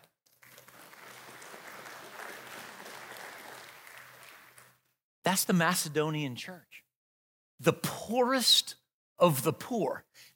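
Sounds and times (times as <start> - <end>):
audience clapping: 0.0 - 5.0
speech: 5.3 - 6.8, 7.6 - 10.3.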